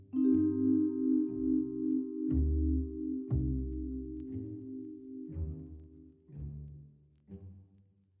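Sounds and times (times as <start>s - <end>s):
music loop: 0.1s - 6.2s.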